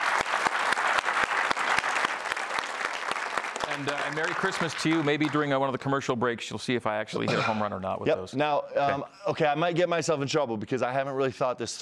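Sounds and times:
round of applause: 0.0 - 5.8
speech: 3.8 - 11.8.

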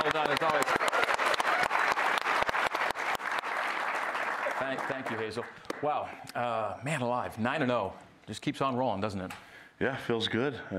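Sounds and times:
audience applause: 0.0 - 5.8
speech: 4.6 - 10.7.

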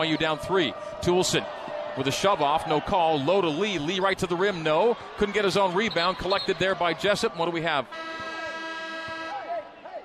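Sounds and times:
speech: 0.0 - 8.2
referee's whistle stopping play: 5.6 - 6.6, 7.9 - 10.0.

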